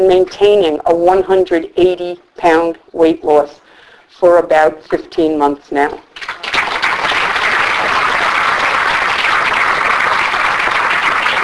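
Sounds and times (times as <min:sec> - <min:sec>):
speech: 0:00.0 - 0:06.3
audience applause and cheering: 0:06.3 - 0:11.4.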